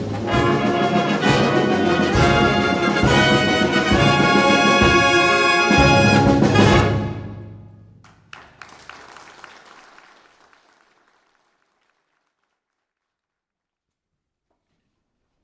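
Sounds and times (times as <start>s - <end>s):
Broadway-style brass music: 0.0s - 8.0s.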